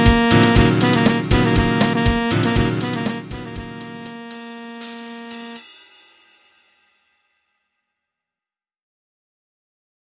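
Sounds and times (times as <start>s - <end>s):
jazz electric piano tone: 0.0s - 5.6s.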